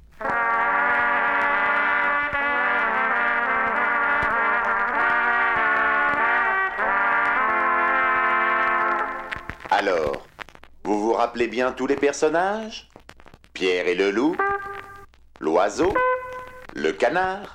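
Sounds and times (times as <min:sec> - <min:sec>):
three stern dark French horns playing: 0:00.2 - 0:09.7, 0:14.2 - 0:15.1, 0:15.7 - 0:16.9
speech: 0:11.2 - 0:12.9, 0:13.6 - 0:14.5, 0:15.4 - 0:16.1, 0:16.8 - 0:17.5.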